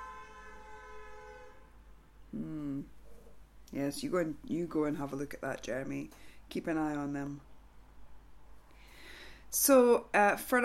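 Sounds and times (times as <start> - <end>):
faint horns tooting: 0.0 - 1.9
speech: 3.7 - 7.5, 9.5 - 10.6.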